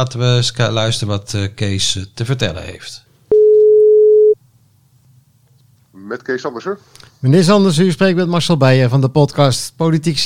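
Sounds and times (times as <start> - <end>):
speech: 0.0 - 3.1, 6.0 - 10.2
telephone call ringing out with a mid-pitched electronic tone: 3.3 - 4.4.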